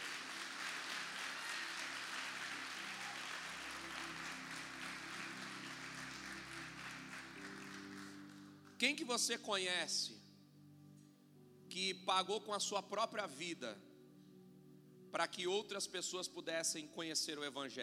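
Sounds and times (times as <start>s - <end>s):
audience applause: 0.0s - 8.5s
speech: 8.8s - 10.2s, 11.8s - 13.9s, 15.1s - 17.8s.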